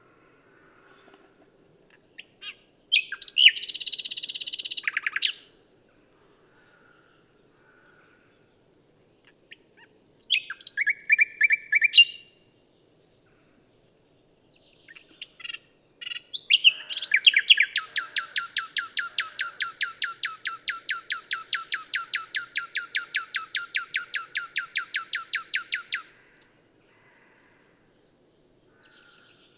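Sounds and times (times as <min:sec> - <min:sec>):
common nightingale song: 0:02.1 - 0:05.6, 0:09.2 - 0:13.5, 0:14.2 - 0:26.1.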